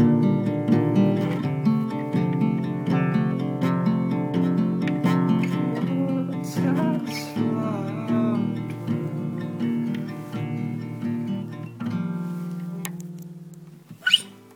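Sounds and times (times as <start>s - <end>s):
pretty guitar: 0.0s - 14.5s.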